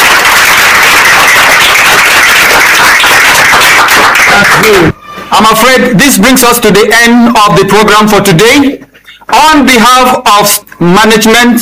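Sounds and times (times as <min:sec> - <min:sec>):
round of applause from a crowd: 0:00.0 - 0:04.9
speech: 0:04.4 - 0:11.6.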